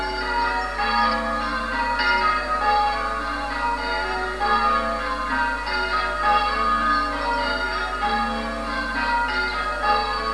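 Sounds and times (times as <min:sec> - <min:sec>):
bells ringing: 0:00.0 - 0:10.3.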